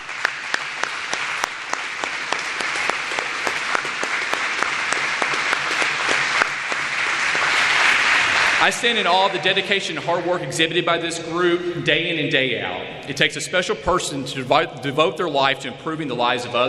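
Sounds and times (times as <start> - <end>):
audience applauding: 0.0 - 10.0
speech: 8.6 - 16.6.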